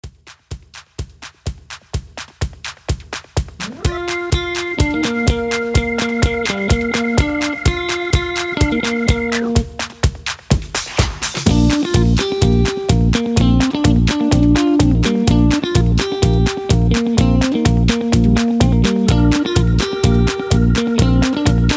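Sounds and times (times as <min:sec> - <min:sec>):
instrumental melody: 0:03.6 - 0:10.0, 0:11.5 - 0:21.7.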